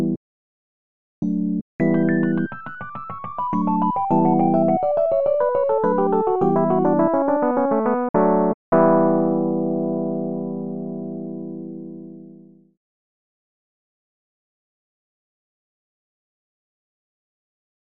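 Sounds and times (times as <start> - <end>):
solo piano: 1.8 - 12.8.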